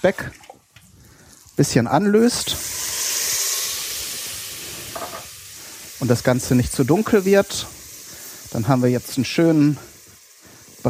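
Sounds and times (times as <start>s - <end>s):
speech: 0.0s - 0.4s, 1.6s - 2.9s, 6.0s - 7.8s, 8.5s - 9.9s
water poured into hot pot sizzling: 0.0s - 10.8s.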